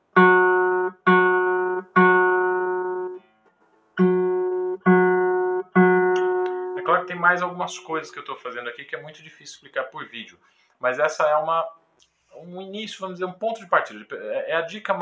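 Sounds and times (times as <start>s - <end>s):
guitar string plucked with nail and fingertip: 0.2s - 7.1s
speech: 7.2s - 15.0s.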